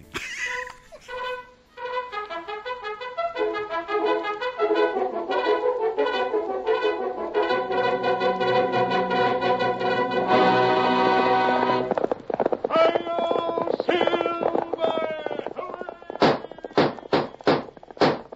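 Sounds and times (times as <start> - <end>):
horse hooves galloping: 1.8 - 18.3
voices: 12.6 - 17.5.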